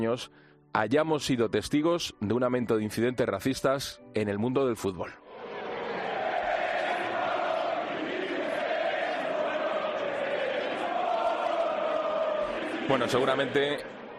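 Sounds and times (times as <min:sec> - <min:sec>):
speech: 0:00.0 - 0:05.2, 0:12.9 - 0:13.9
stadium crowd shouting racist insults at player: 0:05.3 - 0:14.1.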